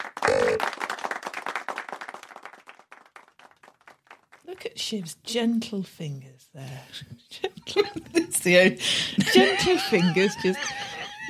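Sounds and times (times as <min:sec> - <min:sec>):
rhythmic hand clapping: 0:00.0 - 0:04.7
speech: 0:04.6 - 0:11.2
laughter: 0:07.5 - 0:11.2.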